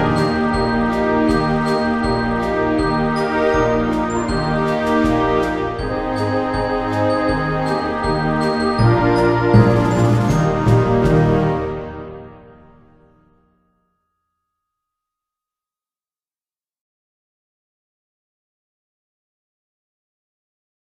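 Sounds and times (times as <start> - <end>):
Christmas song: 0.0 - 14.4.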